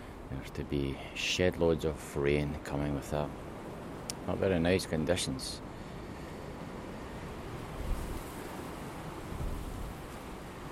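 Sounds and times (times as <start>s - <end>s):
speech: 0.4s - 3.5s, 4.2s - 5.7s
strong gusting wind: 2.6s - 10.6s.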